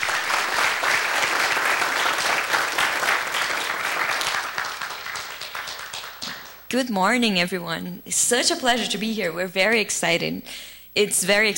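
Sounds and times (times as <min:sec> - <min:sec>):
audience applause: 0:00.0 - 0:06.7
speech: 0:06.7 - 0:11.5.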